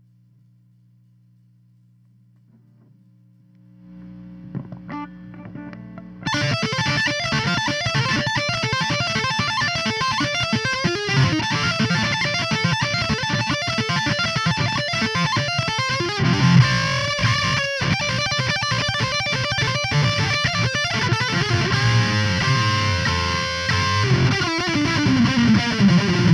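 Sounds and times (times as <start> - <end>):
guitar solo: 4.5 - 26.3.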